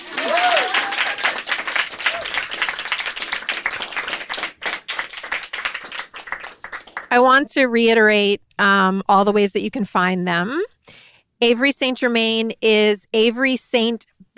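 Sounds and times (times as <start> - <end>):
audience clapping: 0.0 - 7.4
speech: 7.2 - 10.7, 11.4 - 14.3.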